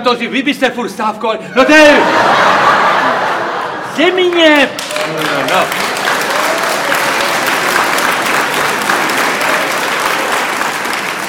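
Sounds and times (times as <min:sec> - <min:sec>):
speech: 0:00.0 - 0:02.8, 0:04.0 - 0:05.8
laughter: 0:01.5 - 0:10.1
applause: 0:04.2 - 0:11.2.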